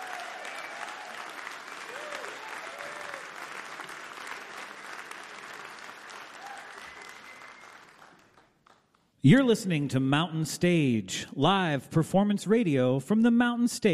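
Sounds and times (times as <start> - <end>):
whoops and cheers: 0.0 - 3.5, 6.2 - 8.1
audience applause: 0.0 - 8.9
speech: 9.2 - 13.9.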